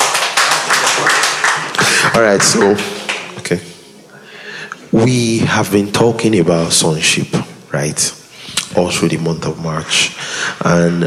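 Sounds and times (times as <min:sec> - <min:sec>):
audience clapping: 0:00.0 - 0:03.7
speech: 0:02.2 - 0:03.7, 0:04.9 - 0:11.0.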